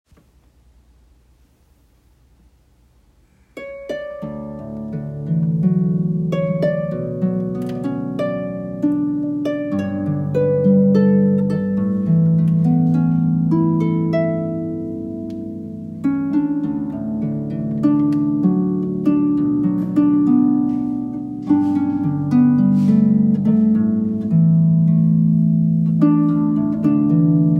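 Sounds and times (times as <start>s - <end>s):
harp: 3.3s - 27.5s.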